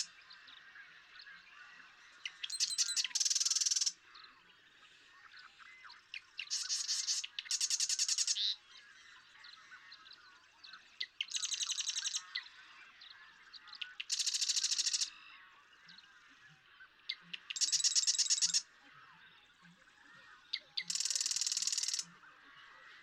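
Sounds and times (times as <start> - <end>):
background birdsong: 0.0 - 23.0
Marsh Wren singing buzzy rattling trills: 2.2 - 3.9, 6.4 - 8.6, 13.8 - 15.1, 17.3 - 18.6, 20.8 - 22.1.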